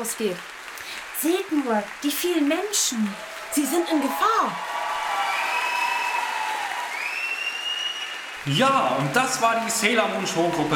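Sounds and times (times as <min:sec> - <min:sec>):
speech: 0:00.0 - 0:00.6, 0:01.2 - 0:04.7, 0:08.4 - 0:10.7
audience applauding: 0:00.0 - 0:10.7
high-pitched whistles or squeals: 0:06.9 - 0:08.3.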